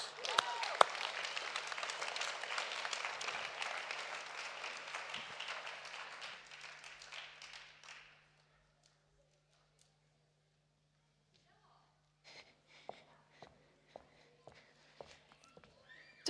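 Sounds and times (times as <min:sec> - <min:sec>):
audience applause: 0:00.0 - 0:08.2.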